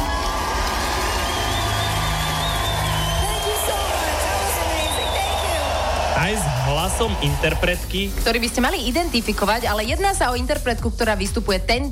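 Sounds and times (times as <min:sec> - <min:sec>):
cheering, whoops and high whistling shouts: 0:00.0 - 0:07.7
applause from a large crowd: 0:00.0 - 0:08.0
speech: 0:06.9 - 0:11.9.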